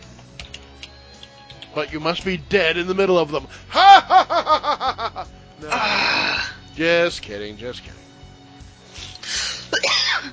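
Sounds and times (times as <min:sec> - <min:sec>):
speech: 0:01.8 - 0:05.0, 0:06.8 - 0:08.1
laughter: 0:03.7 - 0:05.9
person with flaring allergies sneezing: 0:05.7 - 0:06.5, 0:09.3 - 0:10.3.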